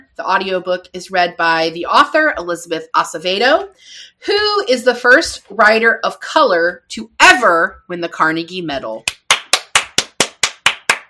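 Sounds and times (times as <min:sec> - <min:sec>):
speech: 0:00.2 - 0:09.2
applause sound effect of sharp hand claps: 0:09.0 - 0:11.0.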